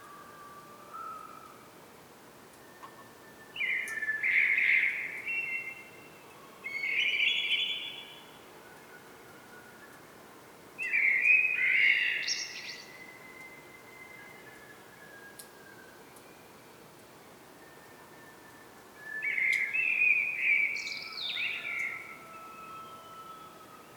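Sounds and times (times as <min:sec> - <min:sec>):
common blackbird singing: 0:03.6 - 0:06.0, 0:06.6 - 0:08.3, 0:10.8 - 0:14.6, 0:19.0 - 0:23.6.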